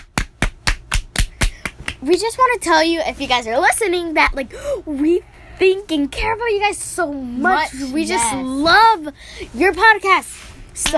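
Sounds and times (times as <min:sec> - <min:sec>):
hands clapping: 0:00.0 - 0:02.1
speech: 0:02.0 - 0:10.9.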